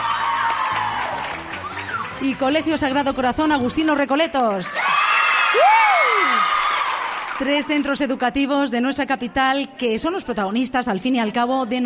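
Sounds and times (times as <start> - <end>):
high whoops: 0.0 - 2.2, 4.8 - 7.0
crowd applauding: 0.0 - 2.8, 4.4 - 7.9
speech: 2.2 - 6.5, 7.4 - 11.8.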